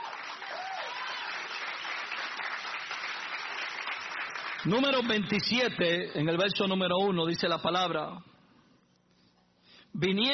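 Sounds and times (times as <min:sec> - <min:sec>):
audience applauding: 0:00.0 - 0:05.2
speech: 0:04.6 - 0:08.3, 0:10.0 - 0:10.3.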